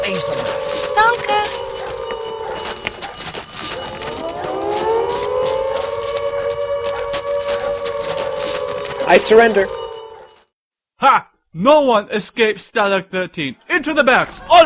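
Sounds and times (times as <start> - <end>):
prison camp alarm siren wailing: 0.0 - 10.5
speech: 0.1 - 1.8, 9.1 - 9.8, 11.0 - 14.6.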